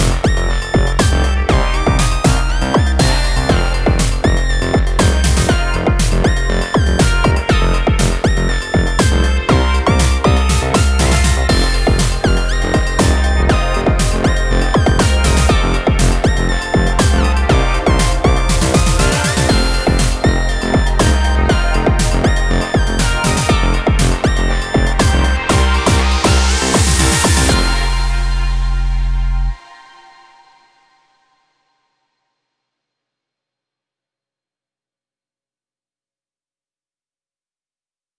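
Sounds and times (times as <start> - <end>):
synth sound through filters in series: 0.0 - 30.0.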